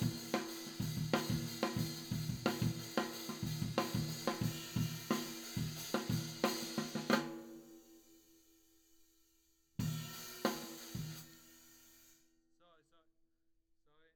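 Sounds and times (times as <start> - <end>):
tom drum: 0.0 - 7.8, 9.8 - 11.7.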